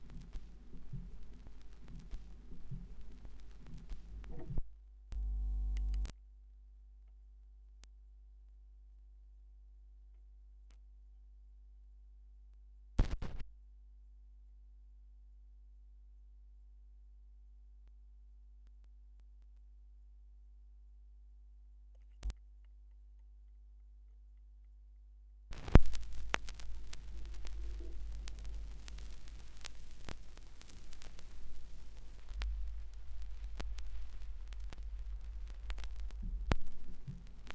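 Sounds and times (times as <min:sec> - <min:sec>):
vinyl record noise: 0:00.0 - 0:04.6, 0:05.2 - 0:06.1, 0:13.0 - 0:13.4, 0:25.5 - 0:37.5.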